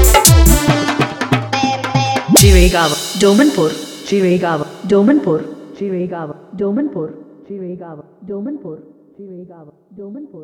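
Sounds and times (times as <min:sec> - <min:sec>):
funny song: 0:00.0 - 0:05.4.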